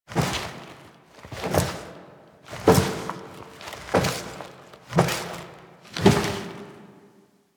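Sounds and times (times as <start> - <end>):
footsteps foley: 0.1 - 6.9.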